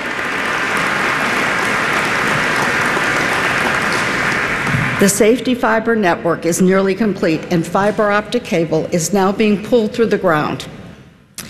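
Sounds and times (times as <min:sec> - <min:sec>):
audience applause at a community summit: 0:00.0 - 0:05.1
speech: 0:05.0 - 0:10.8.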